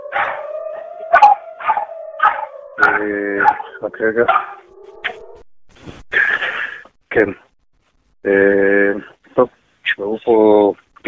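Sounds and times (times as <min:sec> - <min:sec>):
dog howling: 0:00.0 - 0:05.4
speech: 0:03.0 - 0:04.6, 0:07.2 - 0:07.5, 0:08.2 - 0:10.8.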